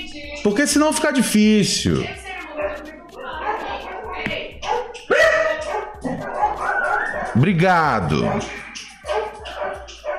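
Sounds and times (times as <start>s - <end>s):
speech: 0.4s - 2.2s, 7.4s - 8.6s
dogs barking in the street: 2.6s - 10.1s.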